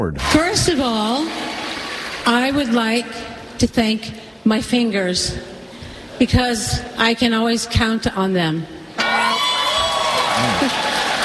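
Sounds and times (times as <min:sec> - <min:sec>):
speech: 0:00.0 - 0:01.5, 0:02.2 - 0:05.5, 0:06.2 - 0:08.8
crowd cheering and applauding: 0:00.1 - 0:02.3, 0:09.0 - 0:11.2
whoops and shouted voices: 0:09.0 - 0:11.2.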